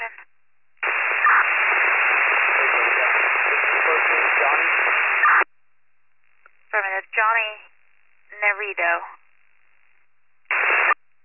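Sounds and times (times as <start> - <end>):
radio static: 0.0 - 0.2, 0.8 - 5.5, 6.7 - 7.7, 8.3 - 9.2, 10.5 - 11.0.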